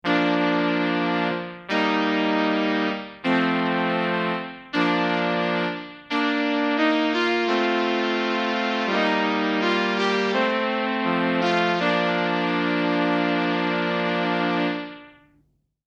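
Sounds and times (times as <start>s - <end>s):
fanfare: 0.0s - 15.2s.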